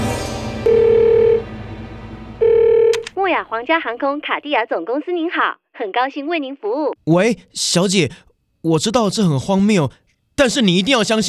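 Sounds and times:
telephone tone calling airline: 0.7s - 1.4s, 2.4s - 3.2s
speech: 3.4s - 11.2s.

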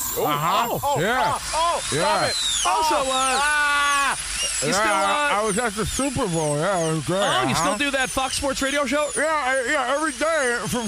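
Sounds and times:
dentist suction hiss: 0.0s - 8.6s
dental drill whine: 0.0s - 10.8s
speech: 0.2s - 3.7s, 4.6s - 10.8s.

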